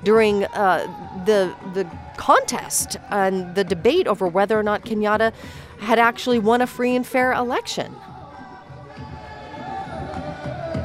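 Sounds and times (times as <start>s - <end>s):
crowd cheering at Kenyatta's inauguration ceremony in a stadium: 0.0s - 5.2s, 7.9s - 10.8s
speech: 0.0s - 8.1s.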